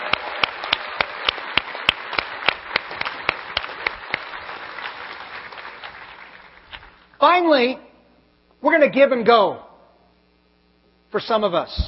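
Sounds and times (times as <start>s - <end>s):
crowd applauding: 0.0s - 7.2s
speech: 7.2s - 7.9s, 8.6s - 9.6s, 11.1s - 11.8s.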